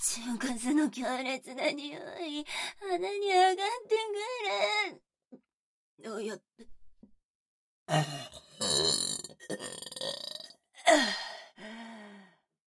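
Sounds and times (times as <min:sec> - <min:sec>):
speech: 0:00.2 - 0:05.4, 0:06.0 - 0:06.8, 0:07.9 - 0:10.2, 0:10.9 - 0:11.3
loud burps: 0:07.9 - 0:10.6.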